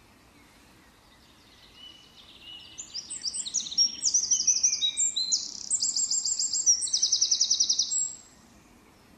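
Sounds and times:
Eurasian wren singing: 1.1s - 8.4s.

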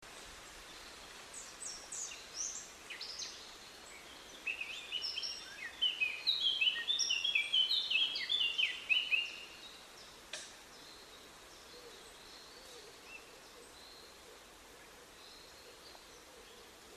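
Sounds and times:
steady background hiss: 0.0s - 16.9s
Eurasian blackcap song: 0.1s - 14.0s.

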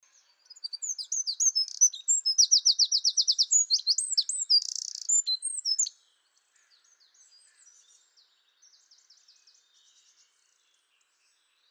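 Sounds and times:
Eurasian wren song: 0.3s - 6.0s.

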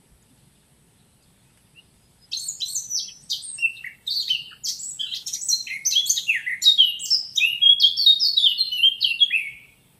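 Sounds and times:
Eurasian blackcap song: 1.7s - 9.8s.

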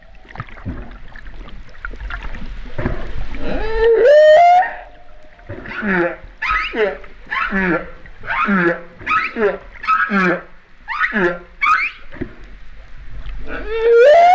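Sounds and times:
humpback whale vocalizing at La Réunion: 3.3s - 12.1s, 13.4s - 14.3s.

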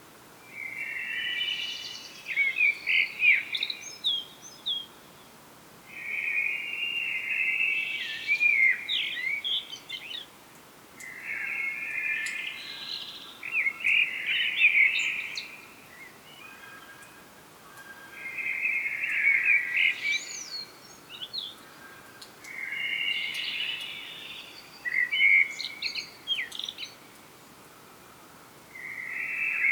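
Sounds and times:
background hiss: 0.0s - 29.7s
common blackbird song: 0.4s - 5.3s, 5.9s - 10.4s, 11.0s - 28.1s, 28.7s - 29.7s.

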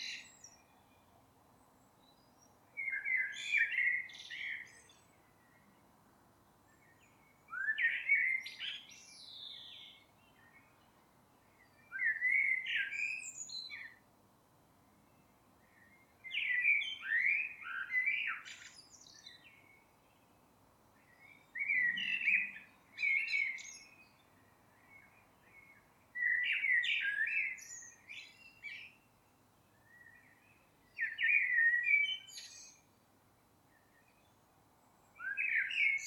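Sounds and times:
Eurasian blackbird singing: 0.0s - 1.0s, 2.0s - 5.8s, 6.8s - 10.9s, 11.5s - 14.0s, 15.7s - 19.8s, 21.0s - 29.1s, 29.7s - 33.0s, 35.2s - 36.0s.

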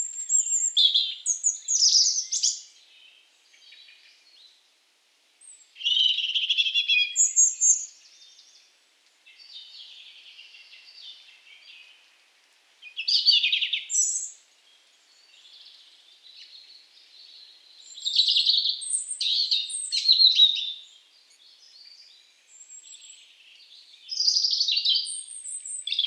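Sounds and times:
European robin singing: 0.0s - 4.6s, 5.4s - 12.1s, 12.8s - 26.0s.

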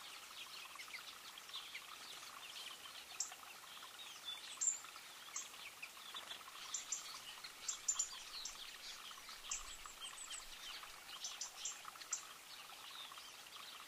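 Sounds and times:
European robin ticking calls: 0.0s - 13.8s.

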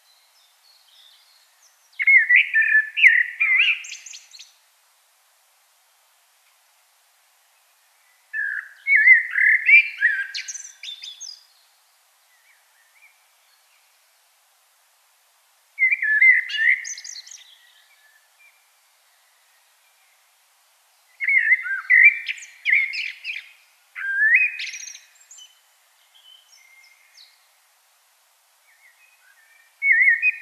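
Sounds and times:
common blackbird song: 0.0s - 4.6s, 7.6s - 14.2s, 15.8s - 20.3s, 20.9s - 27.6s, 28.6s - 30.3s.

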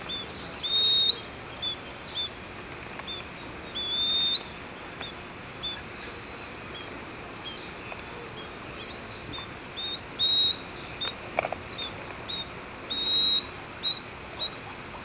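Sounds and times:
bird high whistled notes: 0.0s - 4.5s, 9.8s - 14.6s
steady background hiss: 0.0s - 15.0s.

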